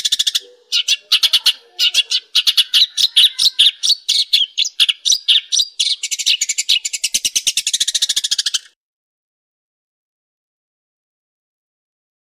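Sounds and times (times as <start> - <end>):
long-tailed shrike chattering song: 0.0 - 8.8.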